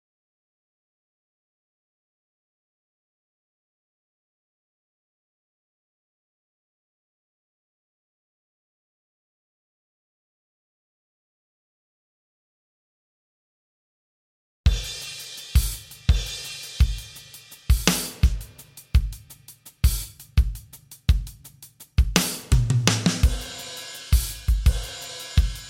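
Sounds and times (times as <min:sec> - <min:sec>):
drums: 0:14.7 - 0:25.6.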